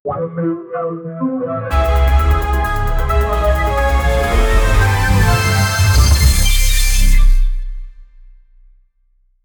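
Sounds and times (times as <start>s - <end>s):
funny cinematic intro music: 1.7s - 8.3s.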